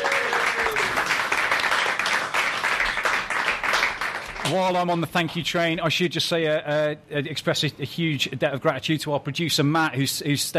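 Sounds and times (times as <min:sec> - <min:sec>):
live audience applause: 0:00.0 - 0:04.5
speech: 0:04.5 - 0:10.5.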